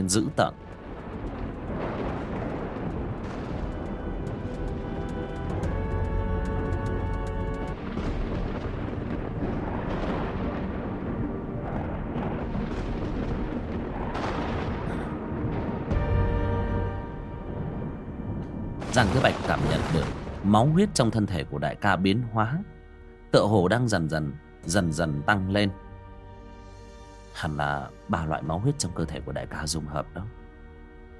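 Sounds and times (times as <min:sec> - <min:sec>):
speech: 0:00.0 - 0:00.6, 0:19.0 - 0:19.4, 0:20.5 - 0:25.8, 0:27.4 - 0:30.4
lightning strikes crashing: 0:00.3 - 0:21.4
rolling thunder: 0:00.3 - 0:21.5.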